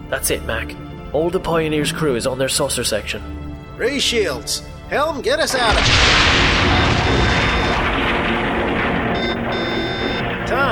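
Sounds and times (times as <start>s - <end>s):
speech: 0.1s - 7.3s
starship warp core explosion in a science-fiction audio drama: 5.6s - 10.7s.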